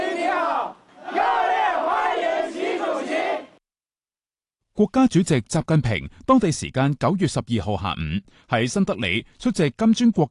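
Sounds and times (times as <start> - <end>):
overseas Chinese crowd chanting in unison to welcome Xi Jinping in New Delhi: 0.0 - 3.6
speech: 4.8 - 10.2.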